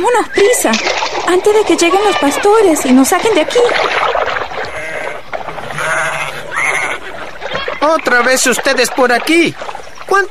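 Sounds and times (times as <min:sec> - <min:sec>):
speech: 0:00.0 - 0:04.4, 0:07.8 - 0:10.2
sheep bleating: 0:04.6 - 0:07.8.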